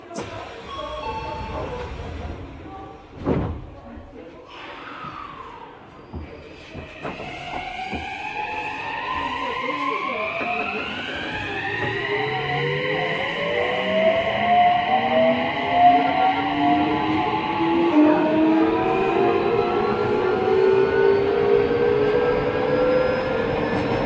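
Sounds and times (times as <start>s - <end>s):
Mitsubishi VVVF inverter whine: 7.0s - 24.0s.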